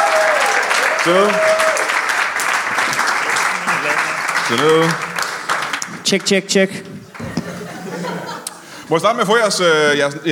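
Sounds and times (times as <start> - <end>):
audience applause at a live comedy show: 0.0 - 6.5
speech: 1.0 - 1.5, 4.5 - 5.1, 6.0 - 6.9, 8.9 - 10.2
laughter: 7.1 - 8.8.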